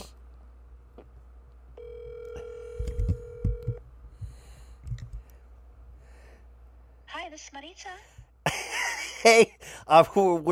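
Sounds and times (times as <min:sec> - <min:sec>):
outgoing telephone call ringback tone: 0:01.8 - 0:03.8
speech: 0:07.4 - 0:08.2, 0:09.2 - 0:10.4.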